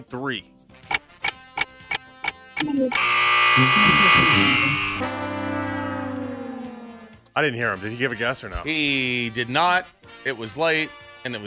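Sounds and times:
speech: 0:00.0 - 0:00.6, 0:02.6 - 0:05.4, 0:07.4 - 0:11.4
shot clock buzzer going off: 0:00.9 - 0:05.1.

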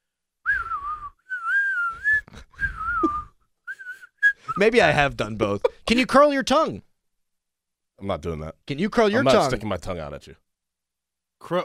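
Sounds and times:
person whistling while breathing in and out: 0:00.4 - 0:04.6
speech: 0:04.6 - 0:06.9, 0:08.0 - 0:10.4, 0:11.4 - 0:11.6.

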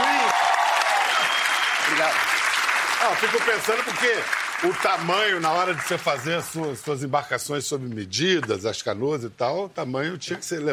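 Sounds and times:
crowd applauding: 0:00.0 - 0:07.1
speech: 0:02.0 - 0:02.3, 0:03.0 - 0:10.7.

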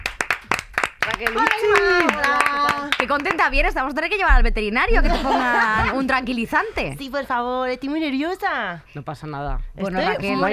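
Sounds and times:
hand claps welcoming a guest onto a Spanish show: 0:00.0 - 0:03.5
speech: 0:01.2 - 0:10.5
laughter: 0:04.9 - 0:06.1.

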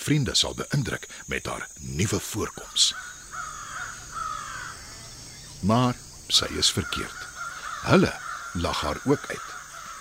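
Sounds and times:
speech: 0:00.0 - 0:03.2, 0:05.6 - 0:10.0
steady hiss: 0:00.0 - 0:10.0
crow cawing: 0:02.8 - 0:05.3, 0:06.4 - 0:10.0.

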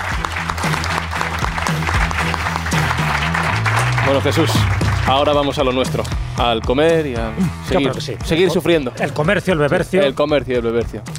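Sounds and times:
audience applause: 0:00.0 - 0:05.7
speech: 0:04.1 - 0:11.1.

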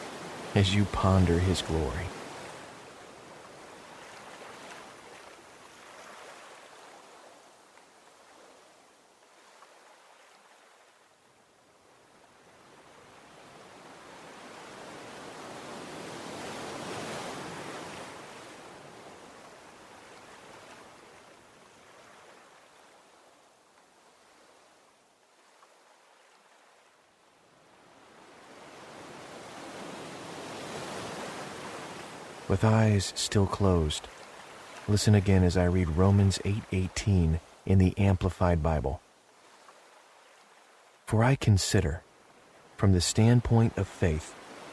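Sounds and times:
ocean waves: 0:00.0 - 0:44.7
speech: 0:00.5 - 0:02.2, 0:32.5 - 0:34.2, 0:34.9 - 0:39.0, 0:41.1 - 0:42.0, 0:42.8 - 0:44.4.

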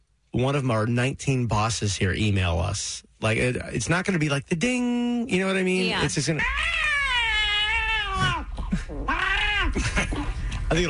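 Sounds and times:
speech: 0:00.4 - 0:07.0
cat meowing with a toy in its mouth: 0:06.4 - 0:08.5, 0:09.1 - 0:09.8.

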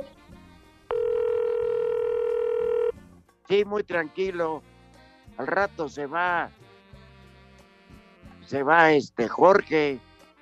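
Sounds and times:
telephone dial tone as a call connects: 0:00.9 - 0:02.9
speech: 0:03.5 - 0:04.7, 0:05.4 - 0:06.6, 0:08.5 - 0:10.1.

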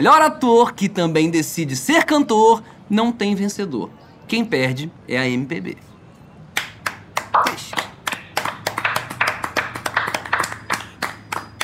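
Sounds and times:
speech: 0:00.0 - 0:05.9
sparse scattered applause without enthusiasm: 0:06.6 - 0:11.6.

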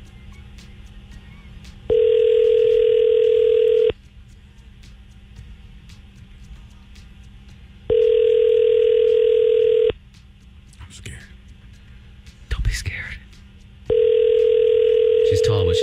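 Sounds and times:
telephone ringing tones while calling: 0:01.9 - 0:03.9, 0:07.9 - 0:09.9, 0:13.9 - 0:15.8.

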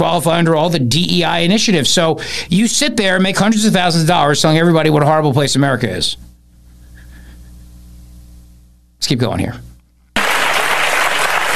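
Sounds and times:
speech: 0:00.0 - 0:06.3, 0:09.0 - 0:09.7
clapping applause sound effect: 0:10.2 - 0:11.5.

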